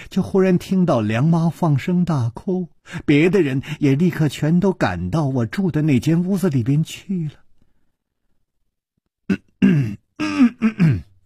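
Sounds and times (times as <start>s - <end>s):
speech: 0.2s - 7.4s
person imitating coughing: 9.3s - 11.2s.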